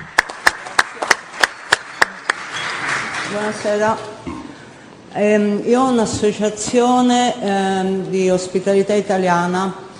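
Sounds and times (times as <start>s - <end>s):
evenly spaced sharp claps: 0.0s - 3.4s
speech: 3.3s - 4.1s, 5.2s - 9.8s.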